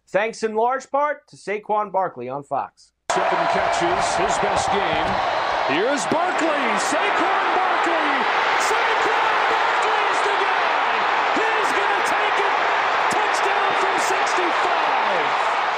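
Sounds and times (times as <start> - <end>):
speech: 0.1 - 8.3
huge stadium crowd cheering: 3.1 - 15.7
scattered shouts and whoops: 3.1 - 15.7.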